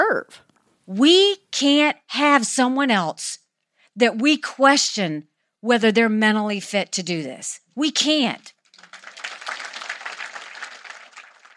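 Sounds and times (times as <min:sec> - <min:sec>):
speech: 0:00.1 - 0:03.4, 0:04.0 - 0:08.6
audience applause after a campaign line: 0:08.7 - 0:11.5.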